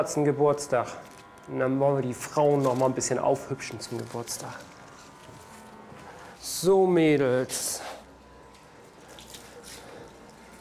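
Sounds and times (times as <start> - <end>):
speech: 0.0 - 4.8, 6.5 - 7.9
warm water at 28 degrees poured over tortoises as they are washed: 8.5 - 10.5.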